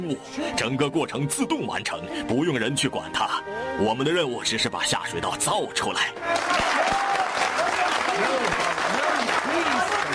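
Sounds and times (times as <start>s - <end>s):
speech: 0.0s - 7.0s
gentlemen clapping for a plan for London's new sewer system: 6.3s - 10.1s.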